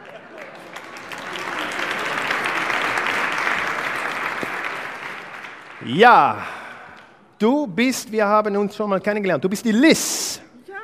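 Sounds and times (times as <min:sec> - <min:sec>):
audience applause: 0:00.0 - 0:06.9
speech: 0:05.9 - 0:06.6, 0:07.4 - 0:10.2.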